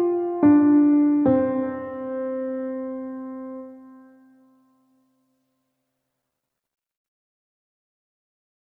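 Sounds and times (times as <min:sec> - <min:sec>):
Christmas song: 0:00.0 - 0:05.0.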